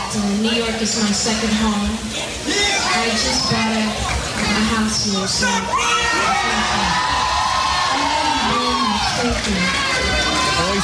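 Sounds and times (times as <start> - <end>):
concert crowd cheering at a live radio broadcast: 0.0 - 10.8
speech: 0.1 - 7.2, 9.0 - 10.8
concert crowd whoops, shouts and high yells: 5.5 - 10.8.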